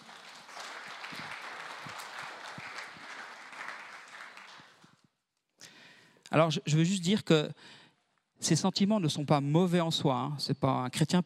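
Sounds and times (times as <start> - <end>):
crowd applauding: 0.0 - 4.9
speech: 6.3 - 7.8, 8.4 - 11.2.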